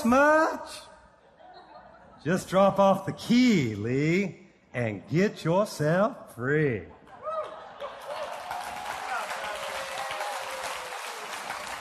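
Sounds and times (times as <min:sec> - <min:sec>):
speech: 0:00.0 - 0:00.9, 0:02.2 - 0:07.0
laughter: 0:01.2 - 0:02.7, 0:06.8 - 0:08.8
audience clapping: 0:07.3 - 0:11.7.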